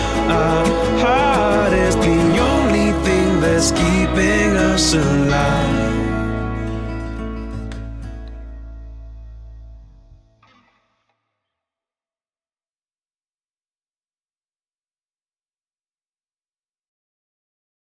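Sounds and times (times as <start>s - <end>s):
acoustic music: 0.0s - 10.4s.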